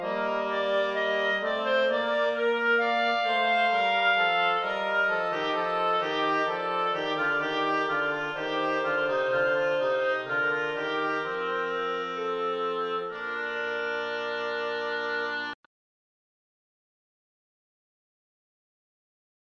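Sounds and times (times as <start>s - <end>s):
fugue in B-flat major: 0.0s - 15.6s.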